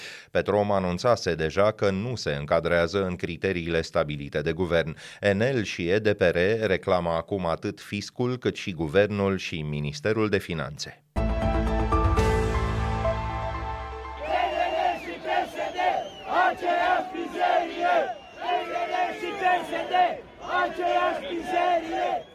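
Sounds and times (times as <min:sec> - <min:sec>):
speech: 0:00.3 - 0:11.0
short sustained musical tone: 0:11.6 - 0:15.2
large crowd booing and jeering at rally: 0:13.8 - 0:22.3.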